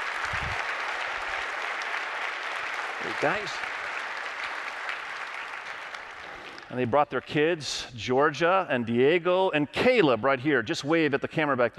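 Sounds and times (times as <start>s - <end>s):
audience applause welcoming a couple on stage at a campus gathering: 0.0s - 6.8s
speech: 3.0s - 3.8s, 6.7s - 11.7s.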